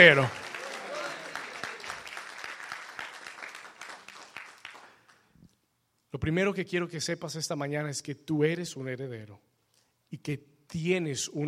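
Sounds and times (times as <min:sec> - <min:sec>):
speech: 0:00.0 - 0:00.4, 0:06.1 - 0:09.5, 0:10.1 - 0:11.4
audience applause: 0:00.0 - 0:05.2.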